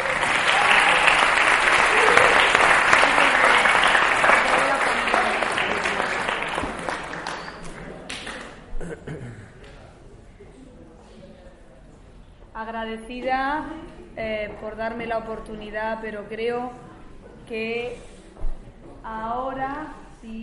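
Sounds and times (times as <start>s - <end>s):
audience applause: 0.0s - 8.6s
speech: 12.9s - 16.9s, 17.5s - 18.1s, 19.1s - 20.4s.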